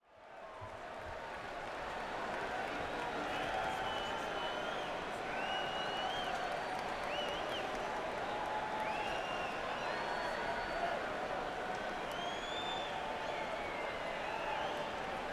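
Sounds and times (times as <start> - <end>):
crowd at Madison Square Garden: 0.0 - 15.3.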